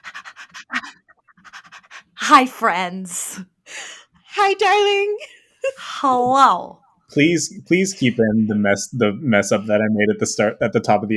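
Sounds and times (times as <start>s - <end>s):
dog panting: 0.0s - 2.2s
speech: 2.3s - 3.5s, 4.4s - 11.1s.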